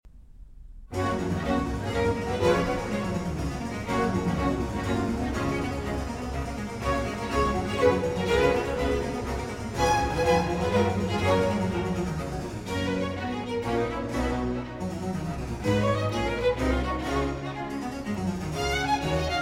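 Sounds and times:
cello concerto allegro: 0:00.9 - 0:19.4.

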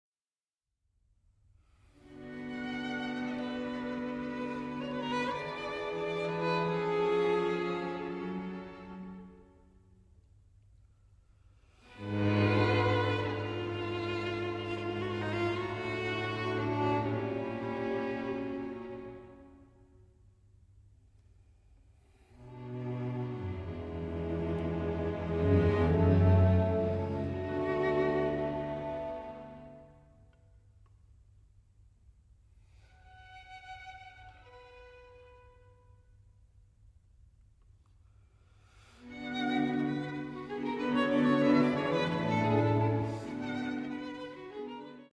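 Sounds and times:
string quartet playing: 0:02.0 - 0:09.4, 0:11.8 - 0:19.4, 0:22.4 - 0:30.0, 0:39.0 - 0:45.1.

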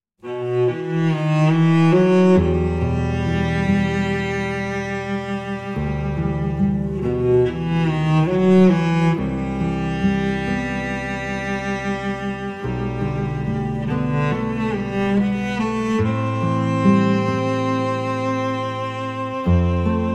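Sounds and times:
cello: 0:00.2 - 0:20.1
guitar: 0:00.2 - 0:20.1.

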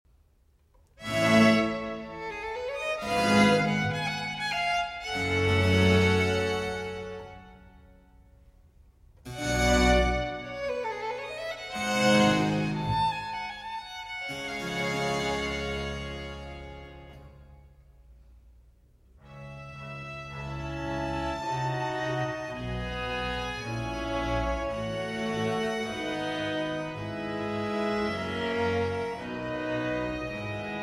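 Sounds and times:
four violins playing a concerto in F major: 0:01.0 - 0:07.7, 0:09.3 - 0:17.4, 0:19.3 - 0:30.8.

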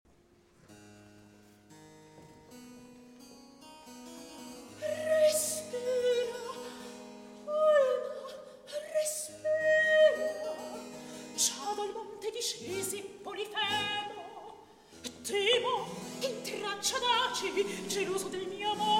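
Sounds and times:
recitative singing: 0:04.8 - 0:18.9.

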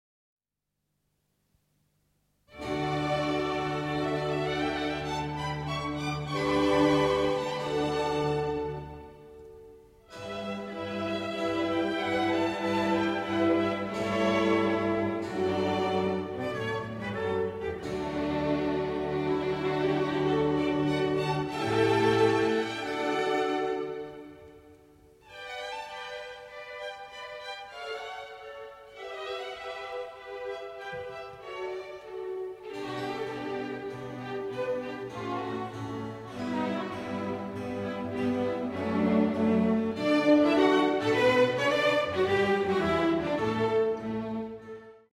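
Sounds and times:
trumpet concerto: 0:02.5 - 0:45.1.

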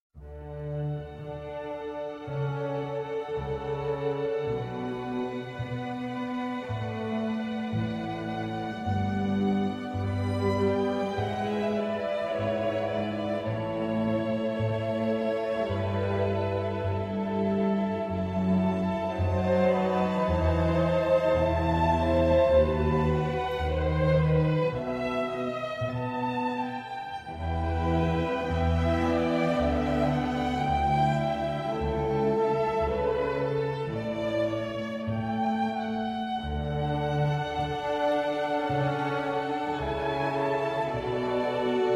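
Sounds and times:
classical air in D major: 0:00.2 - 0:41.9.

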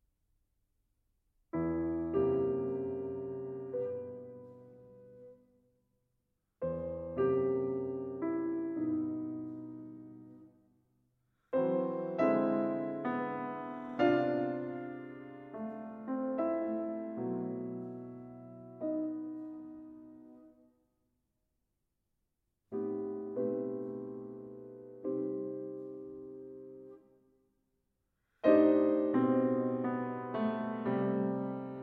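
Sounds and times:
piano suite lento then allegro movement: 0:01.5 - 0:06.0, 0:06.6 - 0:20.8, 0:22.7 - 0:27.6, 0:28.2 - 0:31.8.

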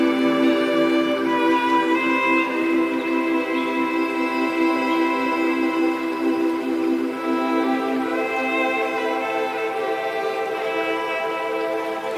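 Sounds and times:
Celtic morning music at 432Hz: 0:00.0 - 0:12.1
happy forest sounds: 0:00.0 - 0:12.1.

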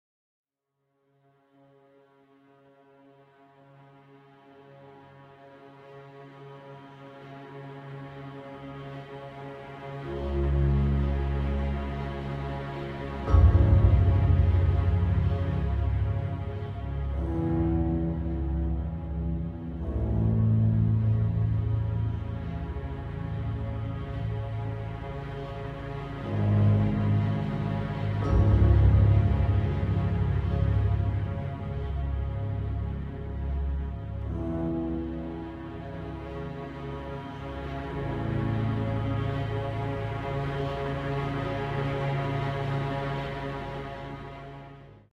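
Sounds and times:
ballade in C minor: 0:10.1 - 0:44.4.

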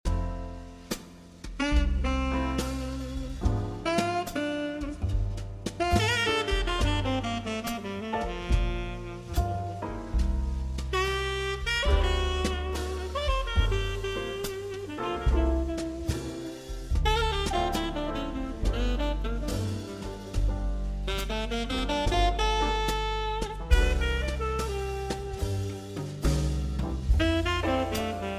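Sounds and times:
dirty jazz music: 0:00.0 - 0:28.3.

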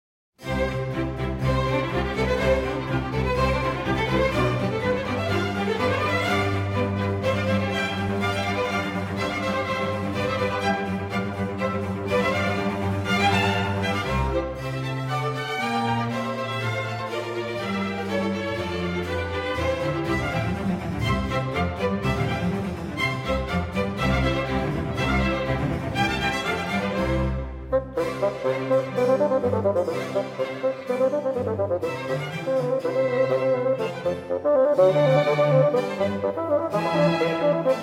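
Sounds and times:
fast bassoon concerto movement in C major: 0:00.4 - 0:37.8.

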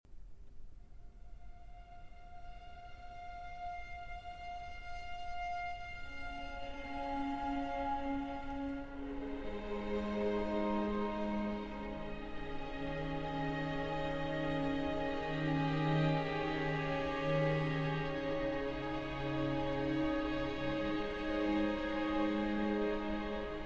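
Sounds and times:
violin: 0:01.2 - 0:23.6
orchestra: 0:01.4 - 0:23.6.

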